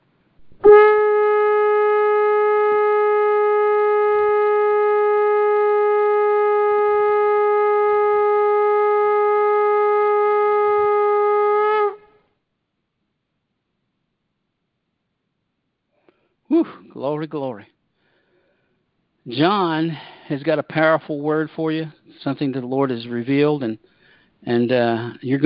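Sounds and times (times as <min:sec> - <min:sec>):
shofar blast: 0:00.4 - 0:12.2
speech: 0:17.2 - 0:17.8, 0:19.3 - 0:25.4.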